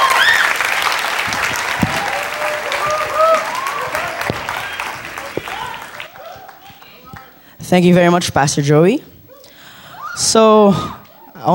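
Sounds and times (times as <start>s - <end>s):
audience applause: 0.0s - 7.4s
speech: 7.7s - 9.1s, 10.2s - 11.5s.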